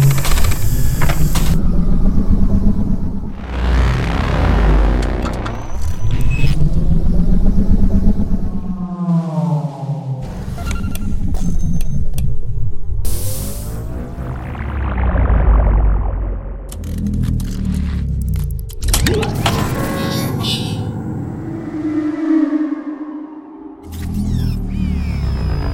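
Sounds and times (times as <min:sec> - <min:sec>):
futuristic vehicles and engines: 0:00.0 - 0:25.7.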